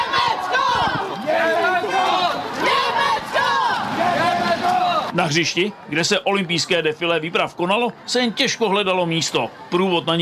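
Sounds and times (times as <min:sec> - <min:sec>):
children shouting team chants: 0:00.0 - 0:05.1
speech: 0:05.2 - 0:10.2.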